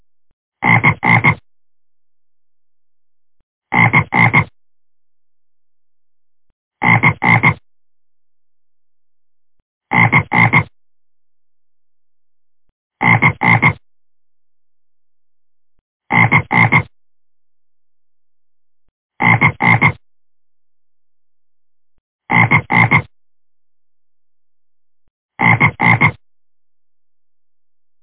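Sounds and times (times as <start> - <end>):
frog: 0.6 - 1.4, 3.7 - 4.5, 6.8 - 7.6, 9.9 - 10.7, 13.0 - 13.8, 16.1 - 16.9, 19.2 - 20.0, 22.3 - 23.1, 25.4 - 26.2.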